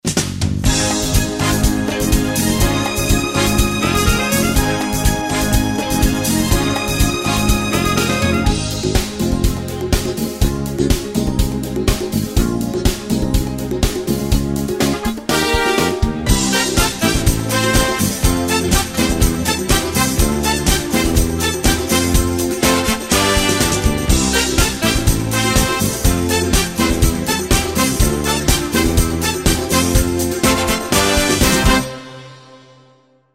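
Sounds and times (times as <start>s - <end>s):
disco music: 0.0s - 32.4s.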